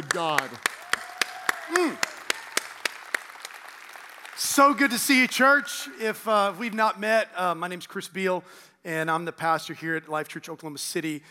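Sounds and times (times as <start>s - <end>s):
church congregation clapping to welcome the pastor: 0.0s - 5.8s
speech: 0.2s - 0.7s, 4.6s - 11.2s.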